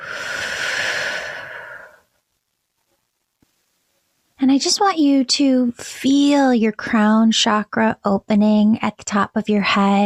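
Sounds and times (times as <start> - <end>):
deep breath in and out during guided prayer: 0.0 - 2.1
speech: 4.6 - 10.0.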